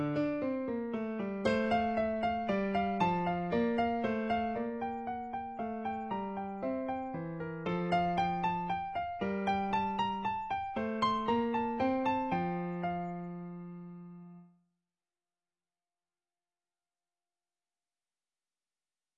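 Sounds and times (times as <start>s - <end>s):
piano minuet with triplets: 0.0s - 14.5s.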